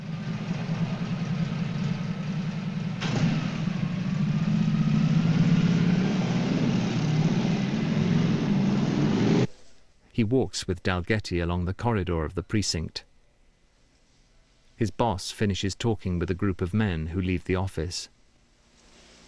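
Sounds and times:
police squad car engine running: 0:00.0 - 0:09.5
speech: 0:10.2 - 0:13.1, 0:14.8 - 0:18.2.

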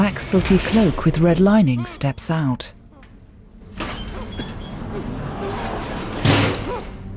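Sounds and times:
speech: 0:00.1 - 0:02.8
lift door sliding open: 0:03.6 - 0:07.1.

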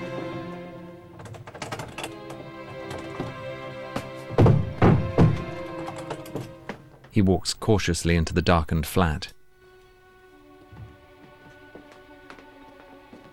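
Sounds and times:
door forced open with a knife: 0:04.3 - 0:06.5
speech: 0:07.2 - 0:09.4.

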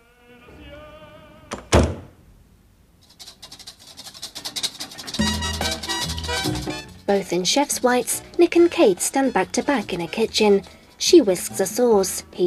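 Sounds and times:
door being pushed shut: 0:01.5 - 0:02.1
speech: 0:07.1 - 0:12.4.

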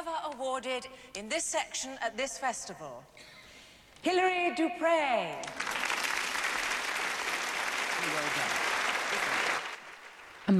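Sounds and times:
speech: 0:00.4 - 0:03.4, 0:04.0 - 0:05.8, 0:08.0 - 0:08.6
crowd applauding: 0:05.4 - 0:10.5.

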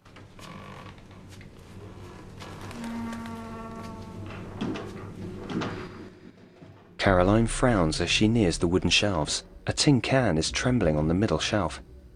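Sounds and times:
faint hum: 0:00.0 - 0:12.1
upper attic door swinging open with a wooden creak: 0:00.2 - 0:05.9
speech: 0:07.0 - 0:11.9.

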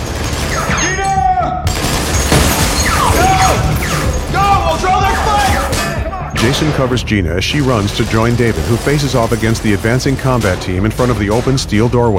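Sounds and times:
submachine gun firing a spray of bullets: 0:00.0 - 0:00.8, 0:07.5 - 0:11.9
shouts or whines: 0:00.7 - 0:01.7, 0:03.0 - 0:06.3
speech: 0:06.6 - 0:12.1.

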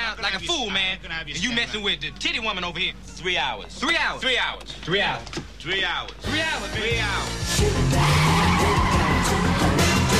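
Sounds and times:
speech: 0:00.2 - 0:08.8
Ferrari tires skidding and squealing in downtown Detroit: 0:07.9 - 0:10.1.

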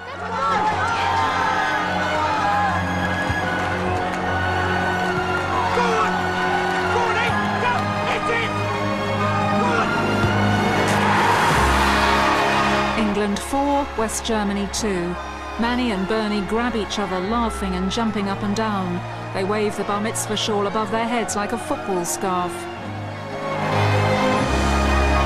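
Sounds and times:
football stadium crowd cheering and shouting: 0:00.0 - 0:25.2
speech: 0:14.0 - 0:22.7.

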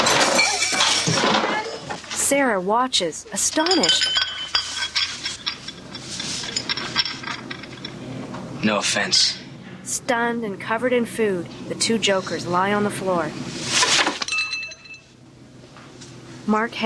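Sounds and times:
bodies crashing into a table and chairs: 0:00.0 - 0:02.1
dishes clinking and clattering: 0:00.0 - 0:02.2, 0:03.4 - 0:08.2, 0:13.8 - 0:15.1
speech: 0:02.3 - 0:04.2, 0:08.6 - 0:09.4, 0:10.0 - 0:13.6, 0:16.5 - 0:16.8.

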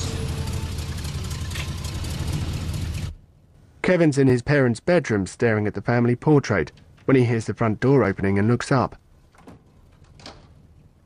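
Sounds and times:
van engine idling: 0:00.0 - 0:03.4
speech: 0:03.9 - 0:09.0.

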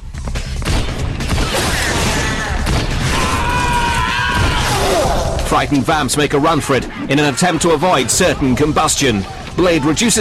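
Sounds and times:
gunfire and heavy impacts in a fight: 0:00.6 - 0:05.0
speech: 0:05.5 - 0:10.2.

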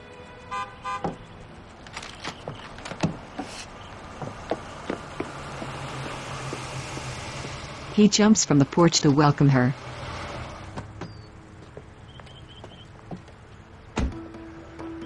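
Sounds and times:
car horn toots: 0:00.0 - 0:01.2
car pulling up in driveway: 0:00.0 - 0:15.0
speech: 0:08.0 - 0:09.8.

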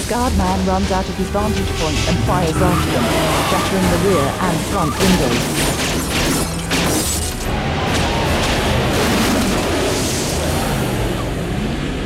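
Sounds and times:
speech: 0:00.1 - 0:06.6
house exploding: 0:05.3 - 0:11.1.

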